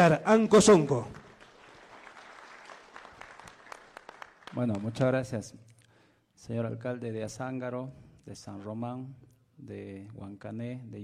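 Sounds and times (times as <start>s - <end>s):
speech: 0.0s - 1.2s, 4.5s - 5.7s, 6.4s - 11.0s
faint applause welcoming a regional governor at an official event in Puno: 1.2s - 5.0s.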